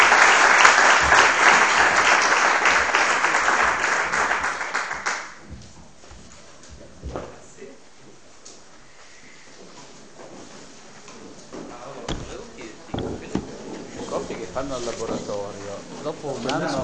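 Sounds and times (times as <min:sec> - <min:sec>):
audience applause: 0:00.0 - 0:05.4.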